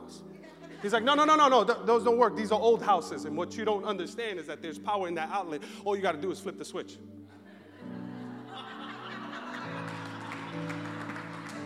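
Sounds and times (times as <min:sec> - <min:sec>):
laughter: 0:00.3 - 0:01.4, 0:07.3 - 0:11.6
speech: 0:00.8 - 0:07.2
audience clapping: 0:09.1 - 0:11.6.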